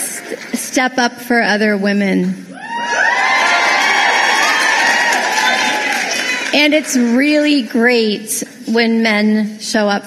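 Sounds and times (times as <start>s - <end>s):
speech: 0.3s - 3.2s, 6.5s - 10.0s
crowd cheering: 2.5s - 7.1s.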